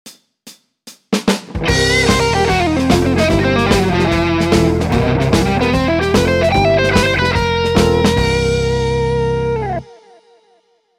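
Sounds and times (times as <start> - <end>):
fast guitar lick: 1.5 - 10.2.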